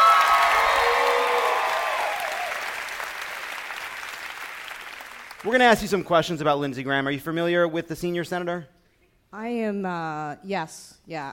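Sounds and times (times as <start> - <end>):
audience applause: 0.0 - 6.0
speech: 5.4 - 11.3.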